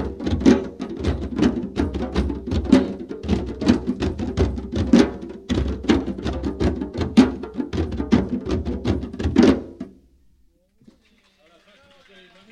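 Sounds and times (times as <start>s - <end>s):
djembe drumming: 0.0s - 10.0s.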